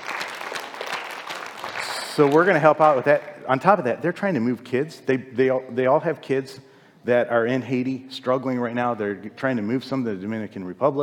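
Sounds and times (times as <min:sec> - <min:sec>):
audience applause: 0:00.0 - 0:03.1
speech: 0:02.2 - 0:11.0.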